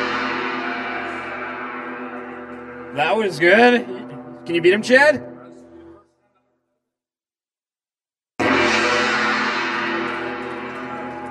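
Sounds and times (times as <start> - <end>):
gong being struck: 0.0 - 5.9, 8.4 - 11.2
speech: 2.9 - 5.3.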